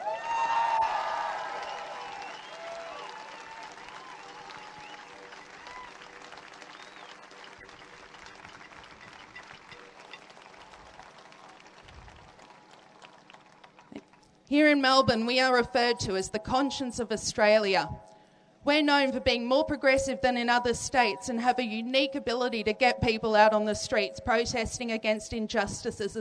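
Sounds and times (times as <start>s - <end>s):
crowd applause at rally: 0.0s - 14.2s
speech: 14.5s - 26.1s.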